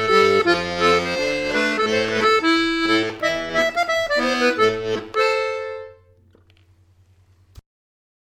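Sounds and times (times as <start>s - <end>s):
Scottish accordion music: 0.0s - 6.2s.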